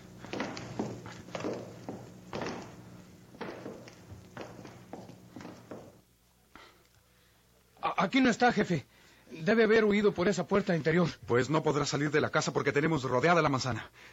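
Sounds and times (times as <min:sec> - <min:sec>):
footsteps of several men advancing slowly and cautiously: 0:00.0 - 0:06.1
speech: 0:08.0 - 0:14.1.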